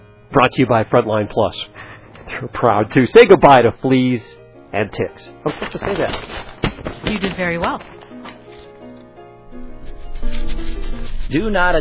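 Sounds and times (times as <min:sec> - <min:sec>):
speech: 0:00.4 - 0:08.0, 0:11.3 - 0:11.7
dogs scratching: 0:05.5 - 0:08.7, 0:09.8 - 0:11.6.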